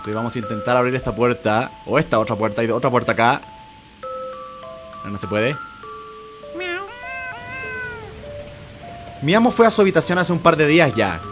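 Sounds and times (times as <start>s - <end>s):
speech: 0.0s - 3.6s, 5.0s - 5.7s, 9.2s - 11.2s
cat meowing: 6.4s - 8.2s.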